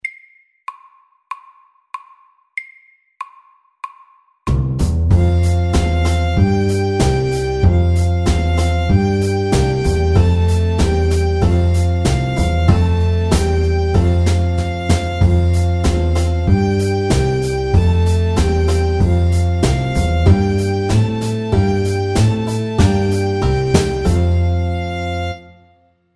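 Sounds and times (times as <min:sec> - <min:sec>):
square dance music: 0:05.1 - 0:25.5.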